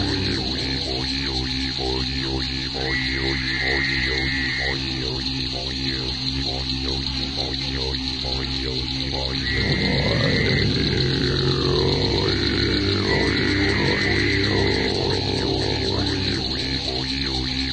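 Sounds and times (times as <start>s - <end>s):
throat singing with whistling overtones: 0.0s - 1.2s, 9.3s - 17.7s
constant high insect hiss: 0.0s - 17.7s
frogs calling on a small lake in the Big Thicket: 0.0s - 17.7s.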